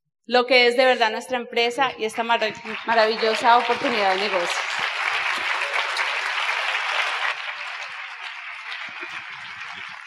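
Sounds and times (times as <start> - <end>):
speech: 0.3 - 4.8
audience applause: 2.3 - 10.0.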